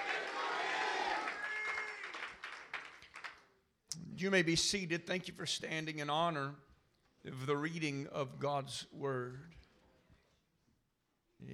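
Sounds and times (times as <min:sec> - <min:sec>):
audience clapping: 0:00.0 - 0:03.6
speech: 0:04.2 - 0:09.6, 0:11.4 - 0:11.5.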